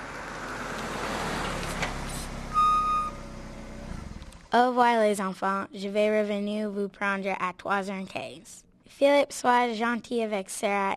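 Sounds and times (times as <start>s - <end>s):
car engine and road rumble: 0.0s - 4.6s
car brakes squealing as car stops in front of university door: 2.5s - 3.3s
speech: 4.5s - 10.9s.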